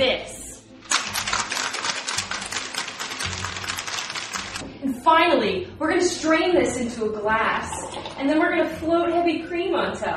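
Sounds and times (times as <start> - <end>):
cocktail shaker with ice rattling: 0.8 - 4.6
speech: 5.1 - 10.1.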